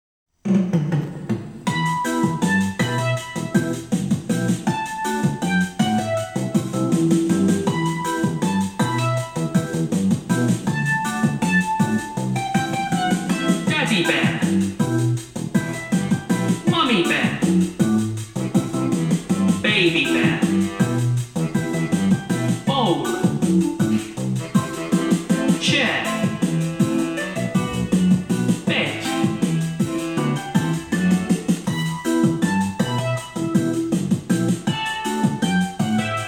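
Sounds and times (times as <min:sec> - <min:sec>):
rap music: 0:01.7 - 0:36.2.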